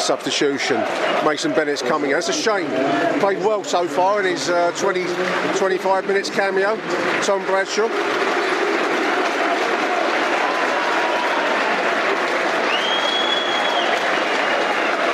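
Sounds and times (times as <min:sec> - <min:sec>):
speech: 0:00.0 - 0:08.3
large stadium crowd applauding: 0:00.0 - 0:15.1
whistle-like tone: 0:12.7 - 0:14.0.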